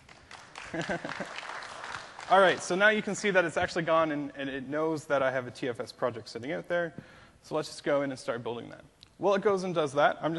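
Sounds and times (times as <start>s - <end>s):
round of applause: 0.0s - 3.1s
speech: 0.7s - 1.5s, 2.3s - 10.3s.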